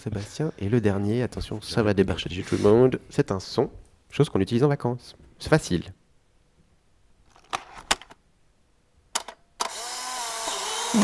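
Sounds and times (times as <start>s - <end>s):
speech: 0.0s - 6.0s
Polaroid instant camera shutter: 9.2s - 11.0s.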